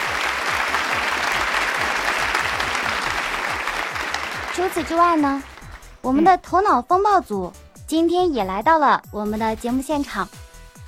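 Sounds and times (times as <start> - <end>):
audience applause: 0.0 - 6.0
speech: 4.6 - 10.4.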